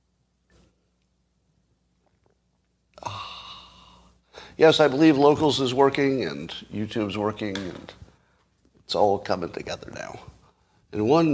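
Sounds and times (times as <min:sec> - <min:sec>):
person sipping coffee: 0:02.0 - 0:04.5
speech: 0:04.6 - 0:08.0, 0:08.9 - 0:10.3, 0:10.9 - 0:11.3.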